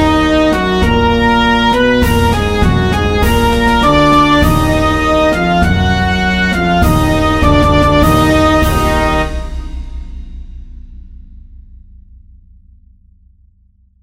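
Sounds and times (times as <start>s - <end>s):
march in C minor: 0.0s - 10.6s.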